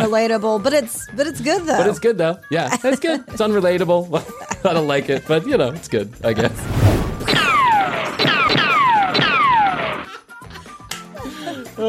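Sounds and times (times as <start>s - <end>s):
speech: 0.0s - 6.8s
gunshot sound effect: 7.1s - 9.8s.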